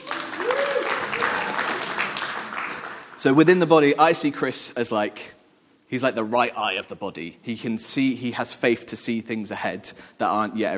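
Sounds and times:
audience applause: 0.0s - 3.2s
speech: 3.2s - 10.7s.

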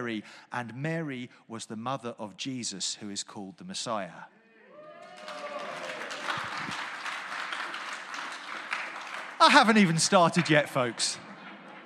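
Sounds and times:
speech: 0.0s - 4.4s, 9.4s - 11.3s
crowd applauding: 4.9s - 11.8s.

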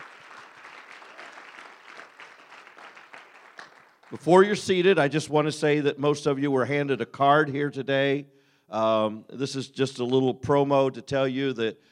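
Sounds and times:
audience clapping in praise: 0.0s - 4.7s
speech: 4.1s - 11.9s.

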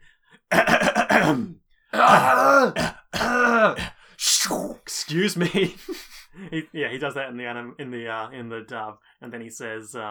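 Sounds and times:
voice imitating a coughing fit: 0.5s - 6.4s
speech: 1.3s - 3.0s, 5.1s - 10.0s
laughter: 5.1s - 6.8s.

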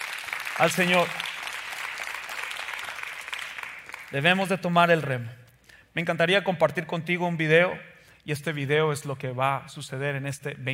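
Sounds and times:
audience applause: 0.0s - 4.1s
speech: 0.6s - 1.2s, 4.1s - 5.4s, 6.0s - 10.7s.

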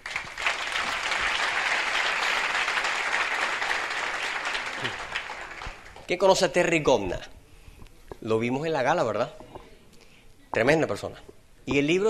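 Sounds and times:
crowd applauding: 0.0s - 6.2s
speech: 6.1s - 7.4s, 8.2s - 9.4s, 10.6s - 12.0s.

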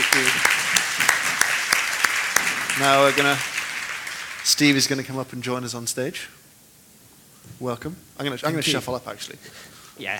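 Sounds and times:
audience applause: 0.0s - 5.2s
speech: 2.8s - 3.5s, 4.4s - 6.4s, 7.6s - 10.1s.

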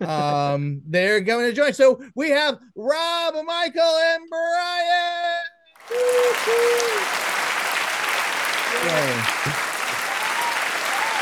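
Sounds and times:
speech: 0.0s - 7.3s, 8.7s - 9.6s
crowd applauding: 5.8s - 11.2s
laughter: 5.9s - 11.2s.

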